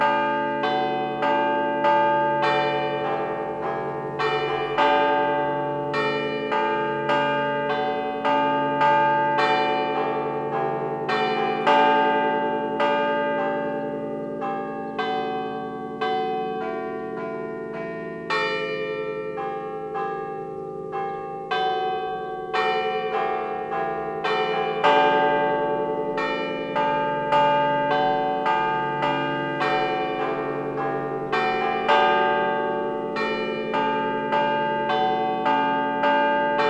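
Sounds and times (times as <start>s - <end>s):
church bells of San Cosimo di Struppa in Genova ringing: 0.0s - 36.6s.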